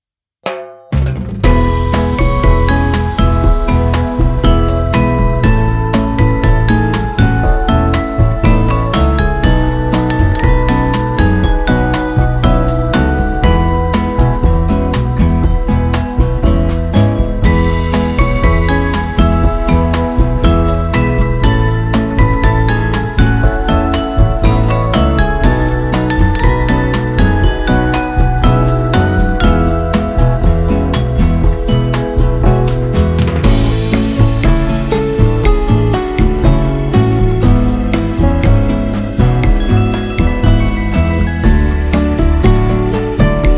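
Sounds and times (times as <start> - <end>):
retro bossa nova elevator music: 1.4 - 43.5.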